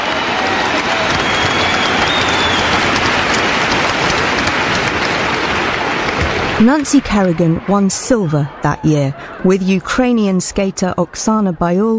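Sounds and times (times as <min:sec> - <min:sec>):
large arena crowd applause: 0:00.0 - 0:09.5
speech: 0:06.6 - 0:11.9.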